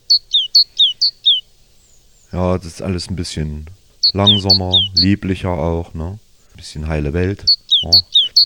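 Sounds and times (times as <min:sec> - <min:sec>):
tit singing: 0:02.3 - 0:06.2, 0:07.1 - 0:08.4
speech: 0:02.3 - 0:08.4.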